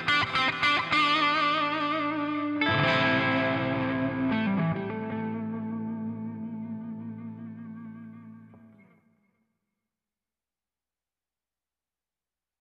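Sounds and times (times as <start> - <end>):
blues on a Les Paul electric guitar through a Voodoo Hex amp: 0.0 - 9.0.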